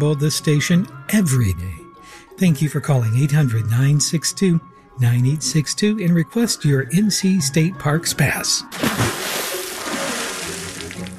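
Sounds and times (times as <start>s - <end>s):
speech: 0.0s - 9.2s
water splashing during a station pledge drive: 8.7s - 11.1s.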